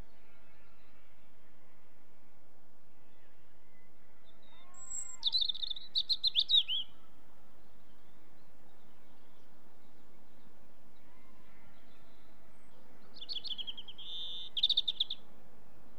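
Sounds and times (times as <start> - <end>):
robin: 4.4 - 15.9
distant sheep: 4.5 - 15.9.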